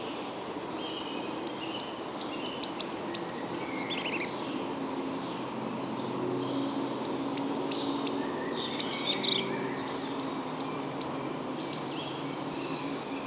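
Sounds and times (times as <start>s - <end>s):
goldcrest singing: 0.0s - 13.2s.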